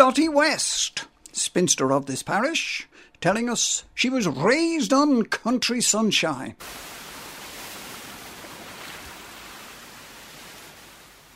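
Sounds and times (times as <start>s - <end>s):
speech: 0.0s - 6.9s
waves washing in as the tide comes in: 6.6s - 11.3s.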